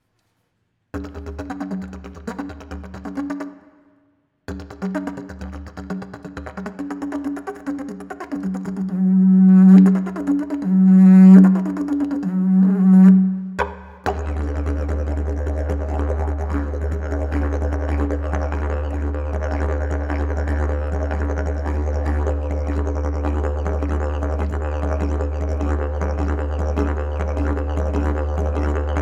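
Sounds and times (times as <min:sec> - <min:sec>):
didgeridoo: 0:01.0 - 0:03.6, 0:04.5 - 0:28.9.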